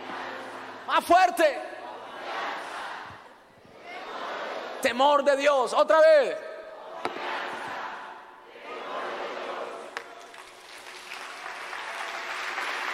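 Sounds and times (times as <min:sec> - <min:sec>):
speech: 0:00.9 - 0:01.7, 0:04.8 - 0:06.4
audience applauding: 0:10.0 - 0:12.9.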